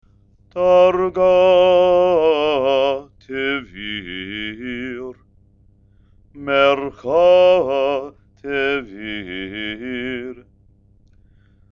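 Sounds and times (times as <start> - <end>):
person chanting haftarah with trope: 0.5 - 5.2, 6.4 - 10.4.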